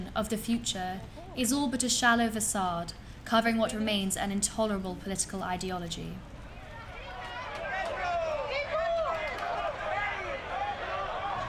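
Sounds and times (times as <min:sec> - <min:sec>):
speech: 0:00.1 - 0:06.3
protest crowd voices in a city square: 0:06.3 - 0:11.4.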